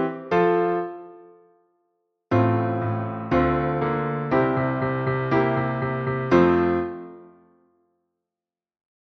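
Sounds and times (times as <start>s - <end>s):
concerto in B-flat: 2.3s - 7.2s.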